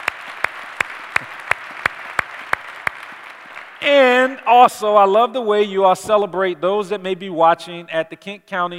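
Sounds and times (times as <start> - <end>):
audience applause: 0.0 - 4.3
rhythmic loud claps: 0.0 - 4.8
speech: 3.8 - 8.7.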